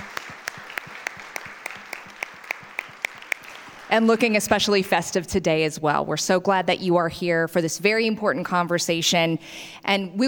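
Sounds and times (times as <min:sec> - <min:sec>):
audience applause: 0:00.0 - 0:04.6
speech: 0:03.9 - 0:10.2.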